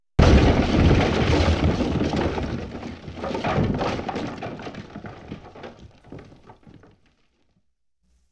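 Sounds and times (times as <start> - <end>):
explosion: 0.2 - 5.5.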